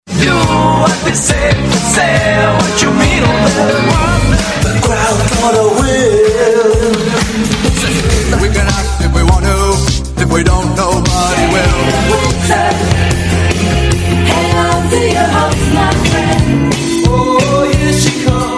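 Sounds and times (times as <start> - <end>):
1980s music mix: 0.0 - 18.5.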